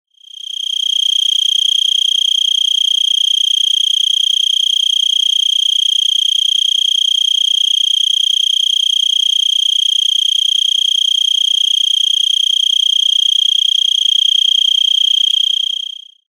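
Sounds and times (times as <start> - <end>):
four-spotted tree cricket trilling: 0.2 - 16.2.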